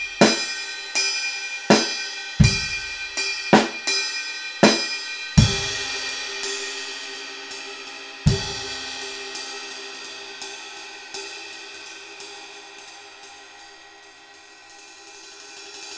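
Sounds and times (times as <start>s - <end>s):
classic 20-inch ride cymbal: 0.0s - 15.9s.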